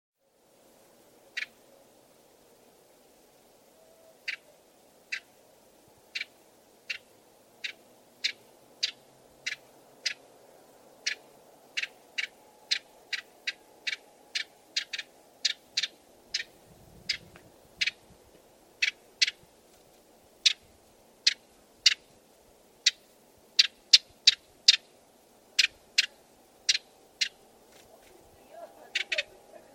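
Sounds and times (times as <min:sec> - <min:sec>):
background hiss: 0:00.2 - 0:29.7
bird sharp ticking calls: 0:01.3 - 0:01.6, 0:04.2 - 0:04.5, 0:05.1 - 0:05.3, 0:06.1 - 0:10.2, 0:11.0 - 0:18.0, 0:18.8 - 0:19.4, 0:20.4 - 0:22.1, 0:22.8 - 0:27.5, 0:28.5 - 0:29.7.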